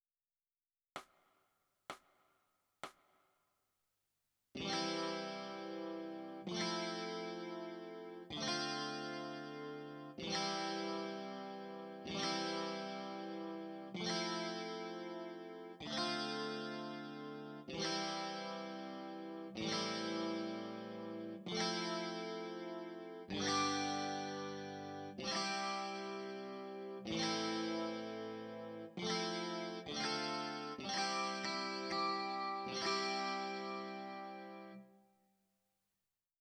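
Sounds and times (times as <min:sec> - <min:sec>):
electric guitar: 0:04.6 - 0:34.8.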